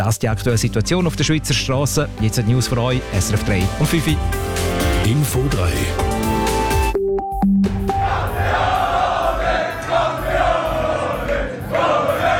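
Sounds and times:
speech: 0.0 - 6.5
football fans cheering championship win: 7.8 - 12.3.

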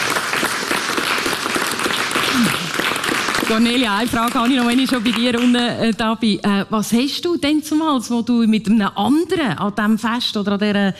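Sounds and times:
applause: 0.0 - 6.0
speech: 3.5 - 10.9.

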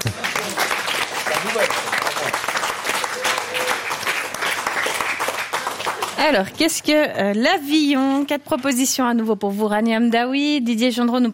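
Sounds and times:
audience applause: 0.0 - 6.5
speech: 1.6 - 2.0, 6.2 - 11.3.

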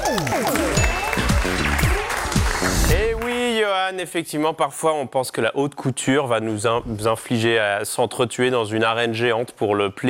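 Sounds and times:
applause: 0.0 - 3.5
speech: 3.8 - 10.0.

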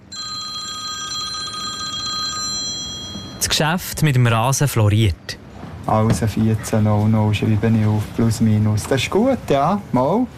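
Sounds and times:
telephone ringing: 0.0 - 3.5
speech: 3.6 - 10.3.

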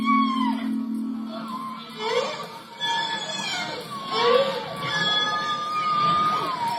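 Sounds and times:
low hum: 0.0 - 4.1
whale song captured by hydrophone: 0.0 - 6.7.

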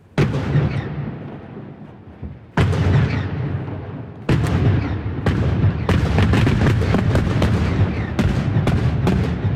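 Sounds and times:
rock blasting explosions at tunnel construction: 0.0 - 9.5.

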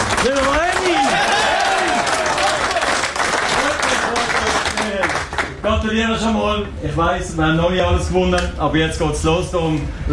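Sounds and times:
applause welcoming a visitor in dressing room: 0.0 - 5.6
speech: 5.7 - 10.1.

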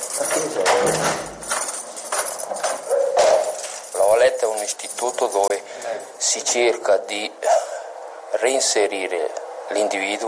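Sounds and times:
footsteps echoing in corridors: 0.0 - 5.6
keys rattling: 0.0 - 6.2
speech: 0.4 - 1.3, 4.5 - 7.7, 8.3 - 10.2.

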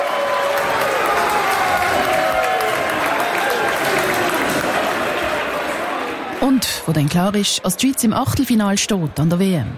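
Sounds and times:
crowd applauding and cheering in full hall: 0.0 - 6.5
speech: 6.6 - 9.7.

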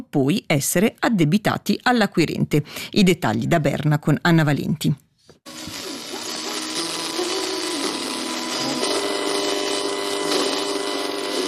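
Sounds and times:
speech: 0.1 - 5.8
electromagnetic interference noise from a lamp: 5.5 - 11.4.

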